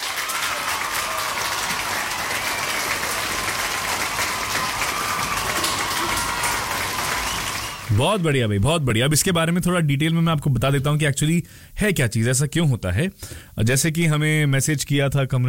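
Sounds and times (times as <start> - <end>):
applause: 0.0 - 8.6
speech: 8.0 - 15.4.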